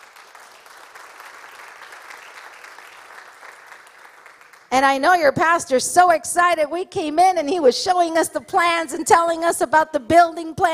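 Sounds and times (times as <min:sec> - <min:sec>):
audience hand clapping: 0:00.0 - 0:04.8
speech: 0:04.8 - 0:10.7.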